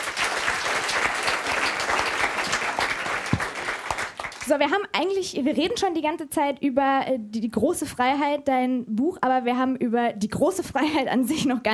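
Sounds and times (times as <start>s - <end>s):
audience applause: 0.0s - 4.5s
speech: 4.5s - 11.7s.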